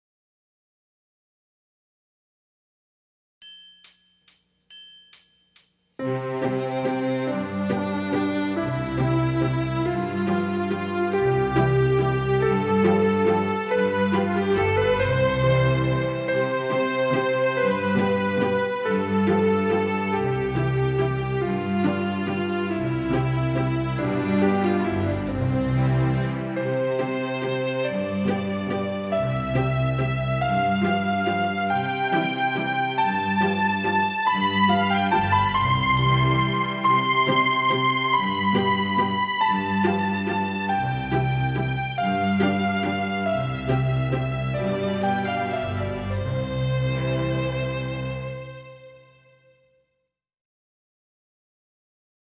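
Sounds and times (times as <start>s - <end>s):
slow scale waltz: 6.4s - 48.6s.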